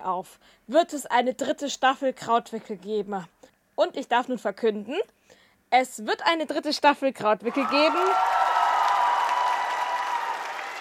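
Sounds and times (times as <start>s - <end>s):
speech: 0.0s - 8.4s
applause: 7.6s - 10.7s.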